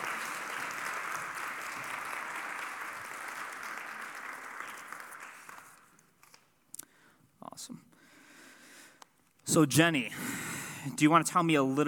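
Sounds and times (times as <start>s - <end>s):
audience applause: 0.0s - 6.0s
speech: 7.6s - 7.9s, 9.5s - 10.2s, 10.8s - 11.8s.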